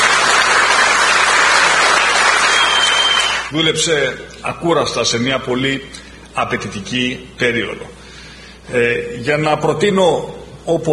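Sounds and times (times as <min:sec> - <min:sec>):
crowd applauding: 0:00.0 - 0:03.5
speech: 0:03.5 - 0:08.0, 0:08.7 - 0:10.9.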